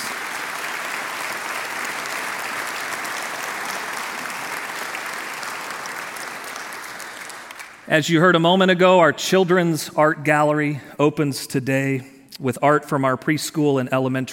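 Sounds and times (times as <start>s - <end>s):
audience applauding: 0.0s - 7.9s
speech: 7.9s - 14.3s.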